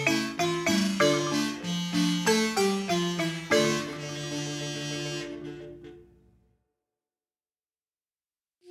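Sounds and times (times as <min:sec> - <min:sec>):
instrumental marimba: 0:00.0 - 0:06.0.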